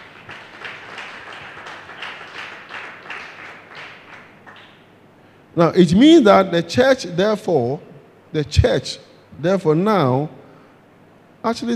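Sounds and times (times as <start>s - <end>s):
crowd clapping: 0.0s - 4.9s
speech: 5.6s - 10.4s, 11.4s - 11.7s.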